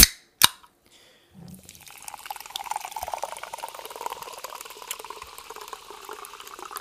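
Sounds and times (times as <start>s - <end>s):
sparkling water fizzing: 1.6s - 6.7s.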